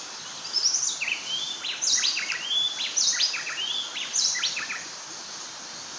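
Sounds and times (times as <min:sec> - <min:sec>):
bay wren Cantorchilus nigricapillus singing rapid clear whistled notes: 0:00.3 - 0:04.9.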